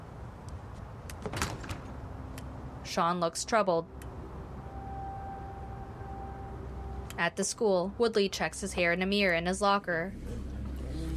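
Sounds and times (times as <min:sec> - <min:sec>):
door shutting with rattling clicks and latching clunk: 0:01.1 - 0:02.0
speech: 0:02.9 - 0:04.0, 0:07.2 - 0:10.5.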